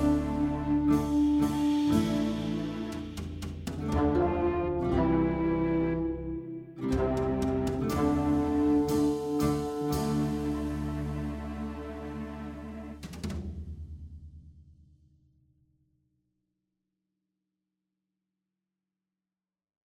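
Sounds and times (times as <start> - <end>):
instrumental music: 0.0 - 13.3.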